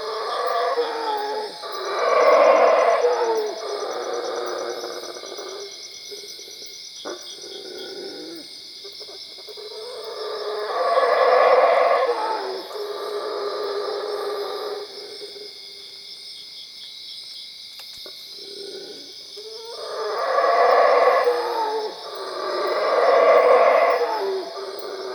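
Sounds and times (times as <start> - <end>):
howler monkey roaring: 0.0 - 5.7, 9.5 - 15.3, 18.4 - 25.1.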